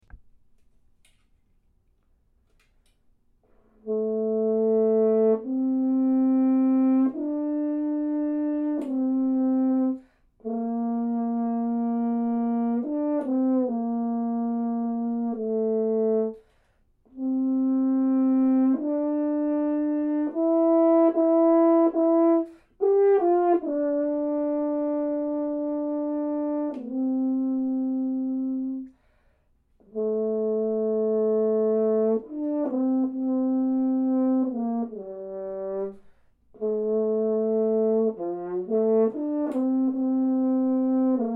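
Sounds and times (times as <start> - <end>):
horn: 3.4 - 41.3.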